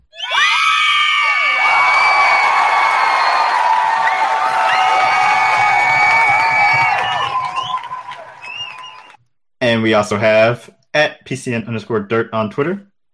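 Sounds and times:
cheering crowd sound effect: 0.1s - 9.2s
speech: 9.8s - 12.9s.

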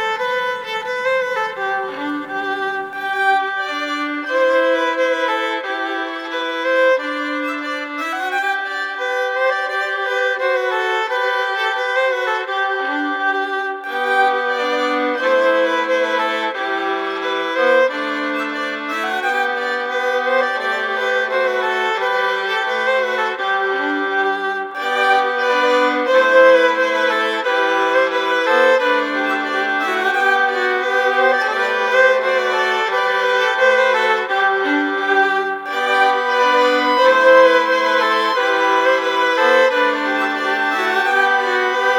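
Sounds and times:
violin melody: 0.0s - 41.9s.

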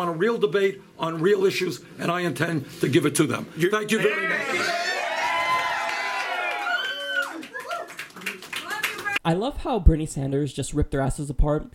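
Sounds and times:
speech: 0.0s - 4.9s, 9.2s - 11.7s
cheering and whoops: 4.1s - 9.2s
audience applauding after a speech: 4.6s - 9.2s.

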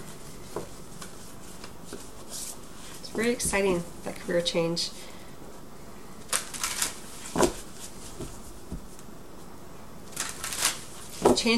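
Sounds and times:
speech: 3.2s - 5.1s
tarot cards drawn from a deck snapping and rustling: 6.3s - 7.6s, 10.1s - 11.3s.

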